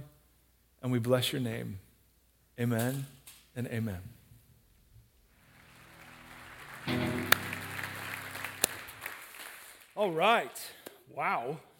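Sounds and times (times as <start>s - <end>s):
speech: 0.8s - 1.9s, 2.6s - 4.2s, 10.0s - 11.7s
crowd clapping: 5.3s - 10.2s.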